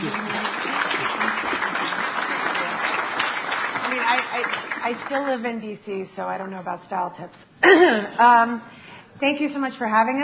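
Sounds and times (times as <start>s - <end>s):
audience applause welcoming a panel: 0.0s - 5.4s
speech: 4.9s - 10.2s.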